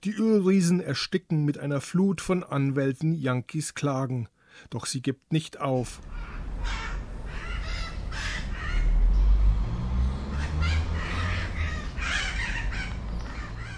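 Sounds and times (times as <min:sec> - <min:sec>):
speech: 0:00.0 - 0:06.9
parrots squawking in a park: 0:05.9 - 0:13.7.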